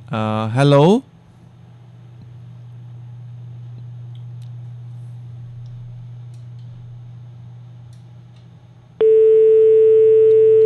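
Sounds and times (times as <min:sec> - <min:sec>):
speech: 0:00.1 - 0:01.1
telephone busy tone after a call disconnects from a technical fault: 0:09.0 - 0:10.6.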